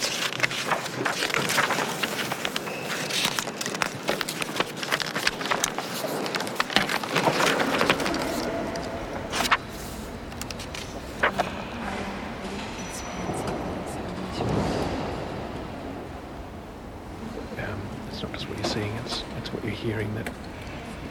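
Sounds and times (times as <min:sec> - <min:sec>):
wooden chairs creaking and knocking together: 0:00.0 - 0:09.8
rustling: 0:00.0 - 0:11.5
faint murmurs of people: 0:06.1 - 0:21.0.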